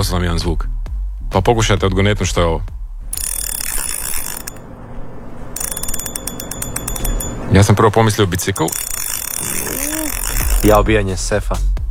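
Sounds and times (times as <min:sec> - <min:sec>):
speech: 0:00.1 - 0:02.8, 0:07.5 - 0:09.0, 0:10.6 - 0:11.7
fishing reel winding while fishing: 0:03.1 - 0:04.6, 0:05.6 - 0:10.9.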